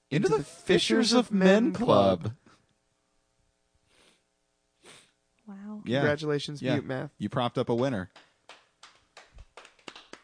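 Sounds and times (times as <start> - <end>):
speech: 0.1 - 2.4, 5.5 - 8.3
one-handed hand-on-leg claps: 7.7 - 10.2.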